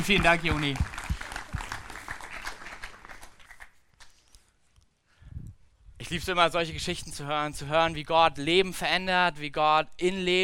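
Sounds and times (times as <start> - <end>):
speech: 0.0 - 0.9, 6.1 - 10.4
audience applause: 0.0 - 3.8.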